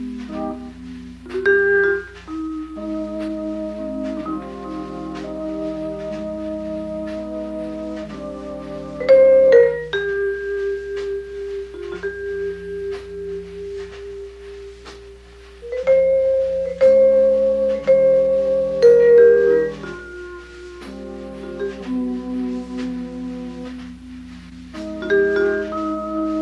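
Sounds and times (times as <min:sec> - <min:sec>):
vibraphone playing: 0:00.0 - 0:23.2, 0:24.1 - 0:26.3.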